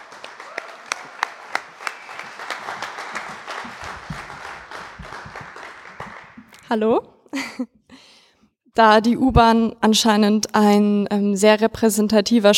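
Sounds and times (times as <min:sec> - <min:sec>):
audience applause: 0:00.0 - 0:06.6
speech: 0:06.7 - 0:07.8, 0:08.8 - 0:12.5.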